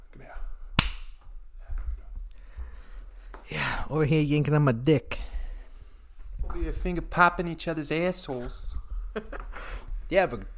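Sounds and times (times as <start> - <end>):
sharp quick hand claps: 0.8 - 1.2
speech: 3.5 - 5.2, 6.7 - 10.5.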